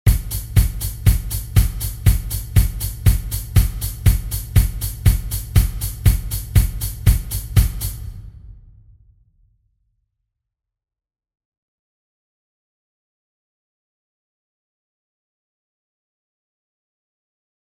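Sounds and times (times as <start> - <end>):
drum rim pattern: 0.1 - 8.6.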